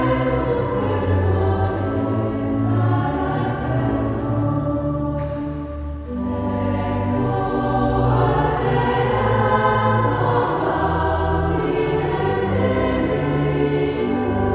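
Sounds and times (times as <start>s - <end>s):
choir of three voices singing: 0.0s - 14.5s
organ: 0.0s - 14.5s.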